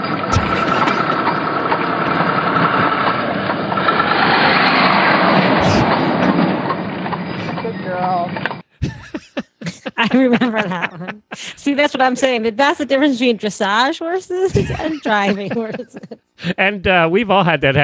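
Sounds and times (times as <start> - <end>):
big semi truck passing: 0.0 - 8.6
laughter: 0.3 - 1.4, 5.3 - 6.5, 8.8 - 12.7, 14.1 - 17.8
speech: 10.1 - 17.8.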